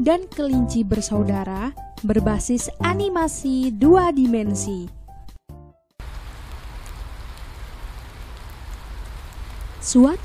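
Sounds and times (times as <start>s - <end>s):
speech: 0.0s - 5.0s, 9.9s - 10.2s
rain falling: 6.0s - 10.2s.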